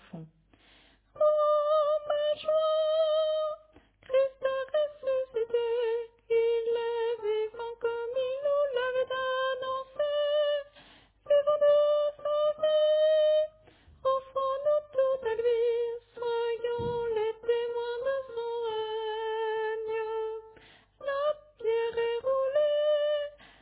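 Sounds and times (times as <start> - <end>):
tenor singing: 1.2 - 23.4.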